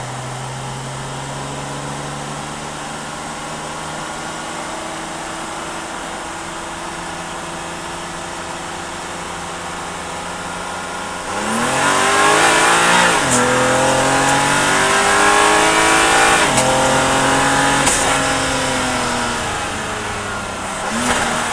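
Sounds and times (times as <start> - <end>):
BMW M4 engine during an onboard drive: 0.0 - 21.5
BMW M4 gearshifts during an onboard drive: 11.0 - 21.5.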